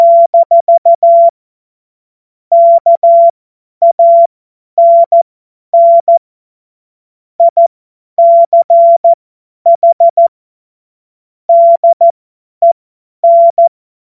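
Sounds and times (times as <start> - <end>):
CW Morse code beeps: 0.0 - 1.3, 2.5 - 5.2, 5.8 - 6.2, 7.4 - 7.6, 8.2 - 10.3, 11.5 - 13.7.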